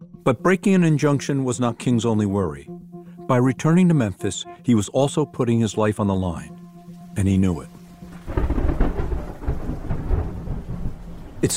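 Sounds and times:
speech: 0:00.2 - 0:06.6, 0:07.2 - 0:07.8, 0:11.4 - 0:11.5
thunder rumbling during a thunderstorm: 0:07.6 - 0:11.5.

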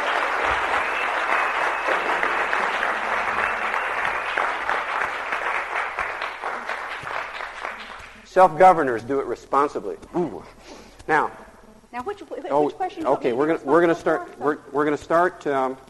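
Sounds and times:
audience applause: 0:00.0 - 0:08.6
speech: 0:08.4 - 0:15.8.

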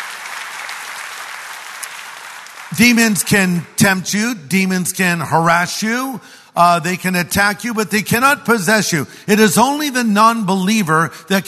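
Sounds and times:
congregation applauding during a church sermon: 0:00.0 - 0:03.8
speech: 0:02.7 - 0:11.4.

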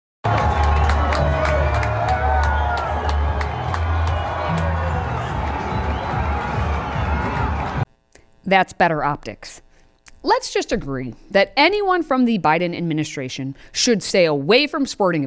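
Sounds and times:
crowd at the NCAA Wrestling Championship in Tulsa cheering for Trump: 0:00.2 - 0:07.9
speech: 0:08.5 - 0:09.6, 0:10.2 - 0:15.2.

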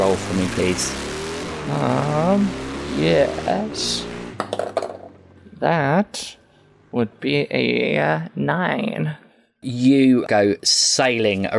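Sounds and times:
motorcycle engine roaring away: 0:00.0 - 0:08.0
speech: 0:00.2 - 0:04.6, 0:05.6 - 0:11.5.

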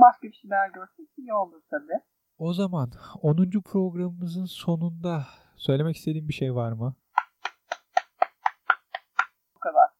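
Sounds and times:
speech: 0:00.0 - 0:07.0
hand clapping: 0:07.2 - 0:09.4.

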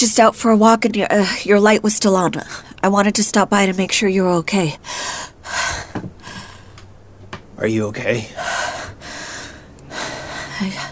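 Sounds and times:
speech: 0:00.0 - 0:06.4, 0:07.6 - 0:09.2, 0:10.6 - 0:10.9
person breathing heavily catching their breath after a nightmare: 0:04.8 - 0:06.8, 0:08.2 - 0:10.9.

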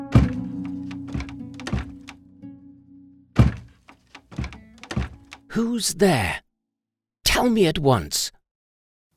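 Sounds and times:
knocking on a door: 0:00.1 - 0:00.5, 0:01.1 - 0:02.1, 0:03.4 - 0:05.4
speech: 0:05.6 - 0:06.4, 0:07.4 - 0:08.3.

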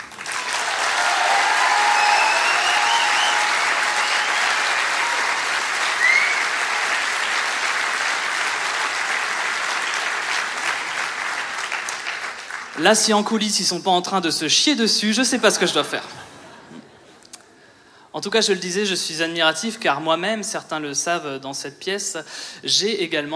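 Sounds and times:
audience applause: 0:00.0 - 0:12.8
speech: 0:12.8 - 0:16.2, 0:18.2 - 0:23.3.

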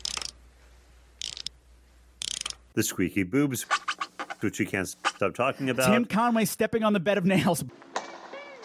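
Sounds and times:
click-click of winding up a doll: 0:00.0 - 0:00.4, 0:01.2 - 0:01.6, 0:02.2 - 0:02.6
speech: 0:02.8 - 0:07.9.

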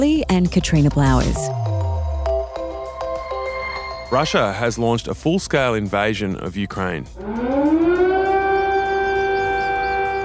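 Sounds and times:
speech: 0:00.0 - 0:01.7, 0:04.1 - 0:07.4
air raid warning siren wailing: 0:01.5 - 0:04.7, 0:07.1 - 0:10.2.

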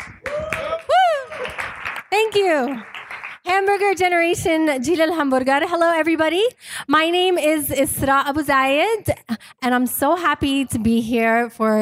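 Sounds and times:
crowd clapping: 0:00.0 - 0:04.0
whoop or whistle: 0:00.2 - 0:01.6
speech: 0:02.2 - 0:11.8.

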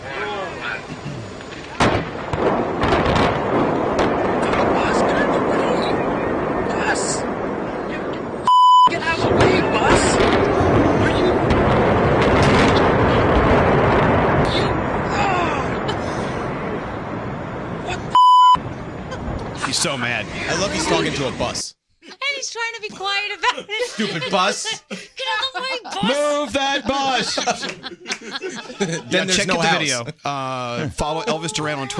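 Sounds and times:
Georgia Dome implosion: 0:00.8 - 0:21.6
laughter: 0:15.3 - 0:16.4, 0:19.1 - 0:21.0, 0:23.0 - 0:31.9
speech: 0:20.6 - 0:21.8, 0:24.0 - 0:24.8, 0:27.3 - 0:31.9.

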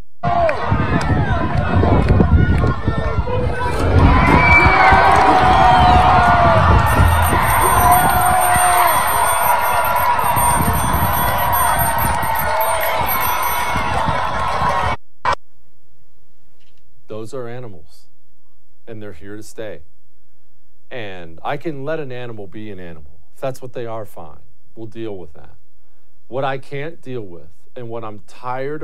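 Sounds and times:
crowd roaring and cheering in played video: 0:00.2 - 0:15.0
scattered high-pitched yells: 0:04.1 - 0:15.0
speech: 0:19.2 - 0:19.9, 0:21.5 - 0:25.6, 0:26.3 - 0:28.8.

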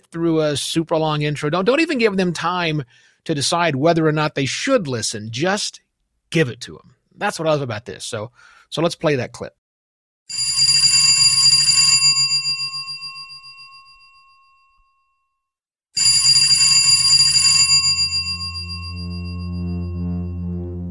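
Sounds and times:
speech: 0:00.0 - 0:09.6
telephone ringing: 0:10.3 - 0:15.1, 0:16.0 - 0:20.5.

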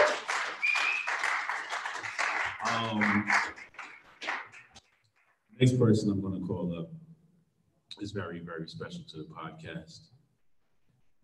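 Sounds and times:
crowd applauding: 0:00.0 - 0:04.8
speech: 0:02.8 - 0:03.6, 0:05.6 - 0:07.0, 0:08.0 - 0:10.1.

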